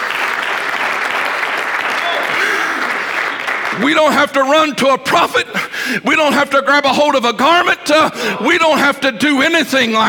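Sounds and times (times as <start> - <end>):
audience applauding: 0.0 - 4.0
speech: 3.8 - 10.0.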